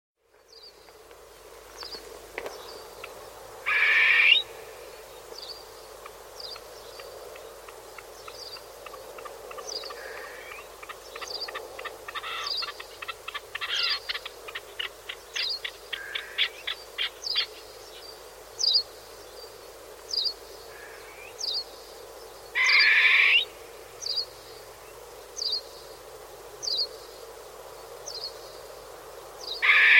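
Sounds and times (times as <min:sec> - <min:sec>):
bird calling: 0:03.7 - 0:04.5, 0:08.2 - 0:17.5, 0:22.6 - 0:23.5, 0:29.6 - 0:29.9.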